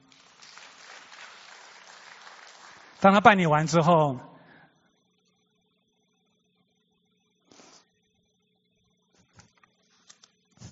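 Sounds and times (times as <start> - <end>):
audience applause: 0.0 - 4.0
speech: 3.0 - 4.3.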